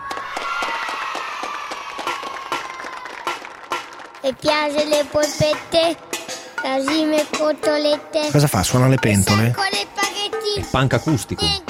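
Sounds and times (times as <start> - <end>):
audience applause: 0.0 - 4.2
speech: 4.2 - 6.0, 6.6 - 11.6.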